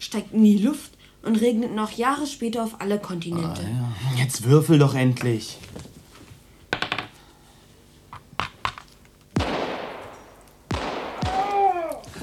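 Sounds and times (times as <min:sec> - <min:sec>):
speech: 0:00.1 - 0:05.9
gunshots outside: 0:09.4 - 0:11.9.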